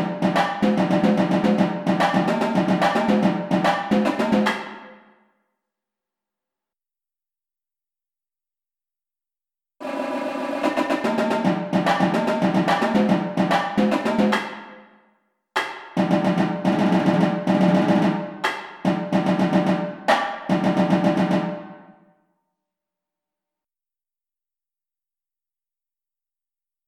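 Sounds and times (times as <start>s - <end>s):
tenor drums: 0.0s - 4.9s, 9.8s - 14.7s, 15.6s - 21.8s.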